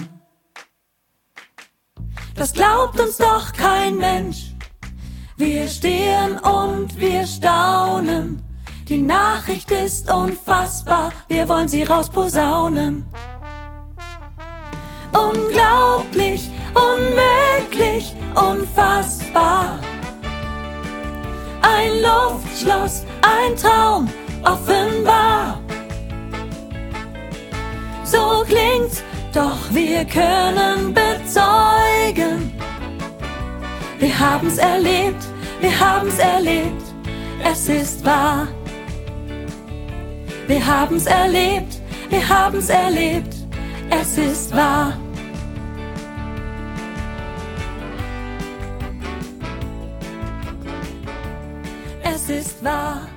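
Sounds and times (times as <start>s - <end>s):
soprano and solo singing: 2.4s - 4.5s, 5.4s - 13.1s, 15.0s - 25.9s, 27.9s - 38.9s, 40.4s - 45.3s, 52.0s - 53.1s.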